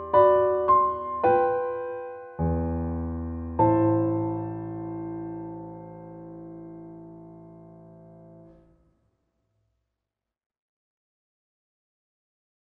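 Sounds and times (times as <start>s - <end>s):
piano: 0.0s - 8.9s.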